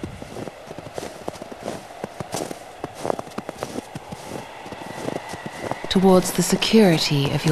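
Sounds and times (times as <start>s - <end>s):
footsteps crunching across a plain of ice: 0.0s - 5.8s
speech: 6.0s - 7.5s.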